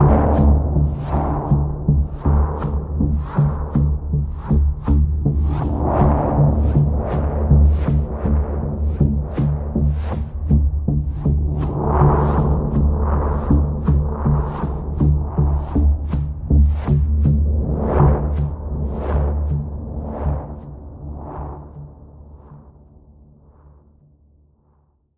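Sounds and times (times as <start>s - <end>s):
pulsing music in the key of D: 0.0s - 23.0s.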